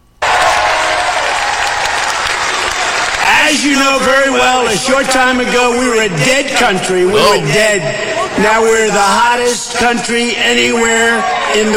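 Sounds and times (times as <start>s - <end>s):
large crowd applauding: 0.2s - 4.4s
speech: 3.5s - 11.7s.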